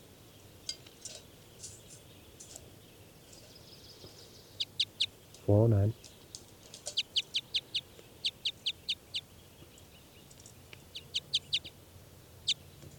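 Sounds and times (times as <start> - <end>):
bird calls: 0.3 - 11.8.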